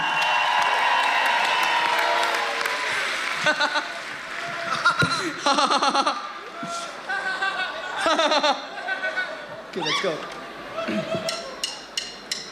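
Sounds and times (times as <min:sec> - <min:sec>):
crowd clapping and cheering at a birthday: 0:00.0 - 0:05.4
speech: 0:03.4 - 0:03.9, 0:09.8 - 0:11.4
laughter: 0:03.4 - 0:04.0, 0:04.6 - 0:06.3, 0:07.0 - 0:09.8, 0:10.8 - 0:11.8.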